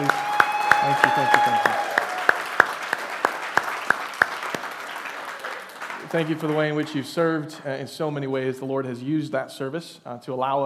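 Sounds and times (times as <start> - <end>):
audience applause: 0.0 - 7.4
speech: 0.9 - 1.6, 6.1 - 10.6.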